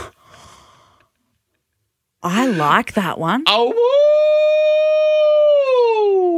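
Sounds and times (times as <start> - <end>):
speech: 2.2 - 4.1
person howling like a werewolf: 3.5 - 6.3.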